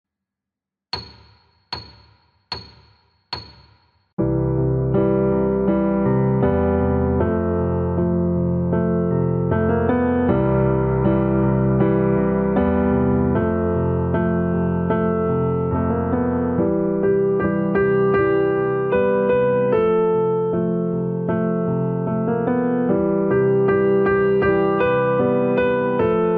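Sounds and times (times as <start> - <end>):
metronome ticking: 1.0 - 3.9
piano: 4.2 - 26.3.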